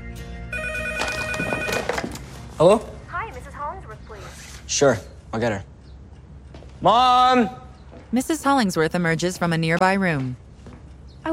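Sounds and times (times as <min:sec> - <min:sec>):
landline telephone ringing in a hallway of a mansion: 0:00.5 - 0:02.4
speech: 0:02.6 - 0:03.0, 0:04.7 - 0:05.7, 0:06.8 - 0:10.4.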